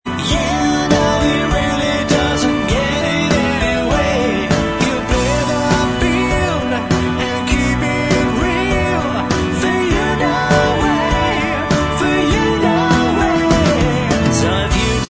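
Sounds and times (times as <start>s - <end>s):
backing vocals: 0.1s - 15.0s.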